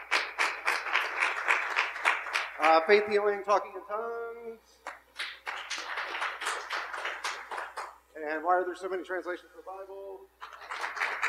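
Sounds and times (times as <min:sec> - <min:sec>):
audience applause as a vote: 0:00.0 - 0:02.8, 0:05.2 - 0:07.9, 0:10.4 - 0:11.2
speech: 0:02.6 - 0:05.0, 0:08.2 - 0:10.5.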